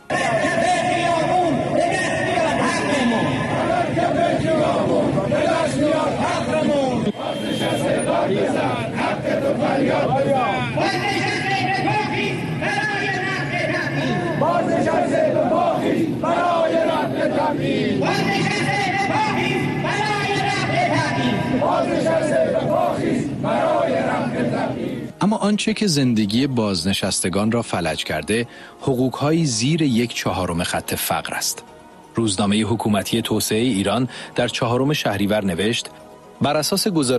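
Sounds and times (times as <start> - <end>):
protest crowd shouting in the street: 0.1 - 25.1
speech: 21.2 - 37.1.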